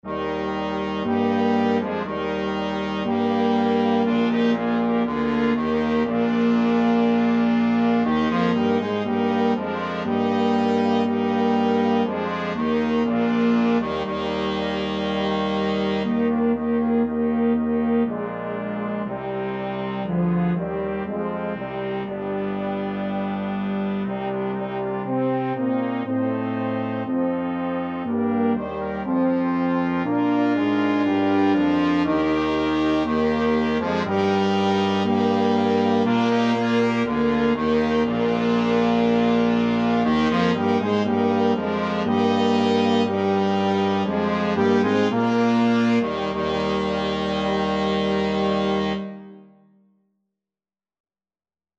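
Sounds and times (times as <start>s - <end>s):
flexible mixed ensemble of 4 players: 0.0s - 49.4s.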